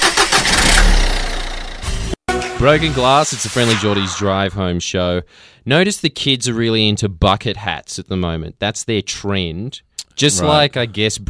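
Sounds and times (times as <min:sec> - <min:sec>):
loud car engine roar in traffic: 0:00.0 - 0:02.1
speech: 0:02.6 - 0:11.2.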